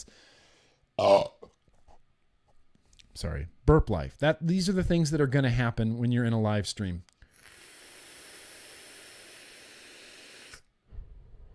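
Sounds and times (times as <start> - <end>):
speech: 1.0 - 1.3, 3.2 - 7.1
airflow hiss of a vape draw: 7.3 - 10.7.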